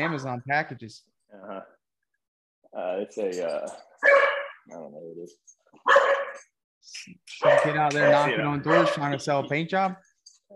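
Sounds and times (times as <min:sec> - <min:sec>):
speech: 0:00.0 - 0:01.8, 0:02.7 - 0:06.2, 0:06.8 - 0:10.5
dog barking: 0:04.0 - 0:04.6, 0:05.8 - 0:06.5, 0:07.4 - 0:09.2.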